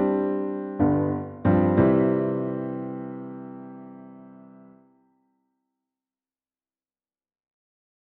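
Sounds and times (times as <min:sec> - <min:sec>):
piano: 0:00.0 - 0:05.0.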